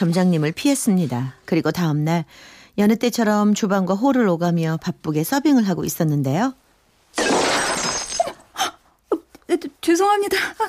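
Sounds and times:
speech: 0.0s - 7.3s, 9.5s - 10.6s
plate shattering on the floor: 7.1s - 8.5s.

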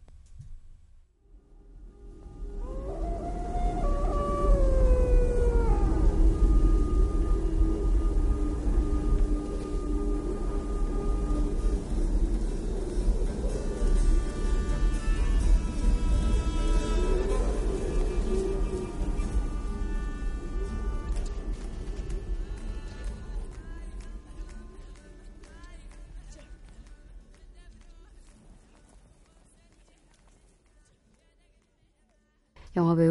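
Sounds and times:
low rumbling drone: 1.2s - 25.4s
mournful film ending melody: 2.0s - 23.6s
speech: 32.8s - 33.0s.

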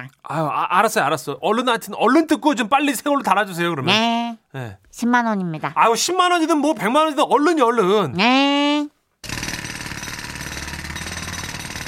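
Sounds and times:
speech: 0.0s - 8.6s
construction jackhammer pounding: 9.2s - 11.8s.

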